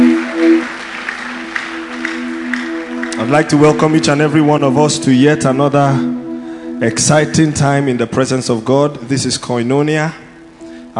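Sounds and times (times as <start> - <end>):
church congregation applauding: 0.0 - 5.5
sustained steady tones: 0.0 - 10.9
speech: 3.2 - 6.2, 6.8 - 10.2.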